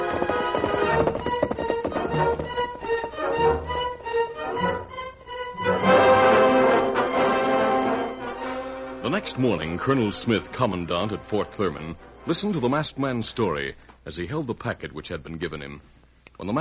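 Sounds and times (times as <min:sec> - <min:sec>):
hoofbeats of the horse Silver galloping along a road: 0:00.0 - 0:04.9
loud orchestral music: 0:00.0 - 0:12.8
speech: 0:09.4 - 0:16.6.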